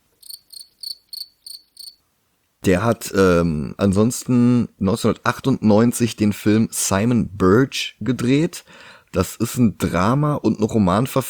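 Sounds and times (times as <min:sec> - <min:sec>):
crickets chirping, inserted sound effect: 0:00.2 - 0:02.0
speech: 0:02.6 - 0:11.2.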